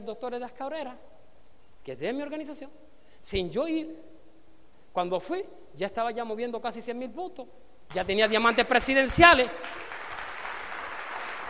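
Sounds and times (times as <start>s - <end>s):
speech: 0.0s - 1.2s, 1.8s - 4.1s, 5.0s - 9.9s
audience applause: 9.6s - 11.4s.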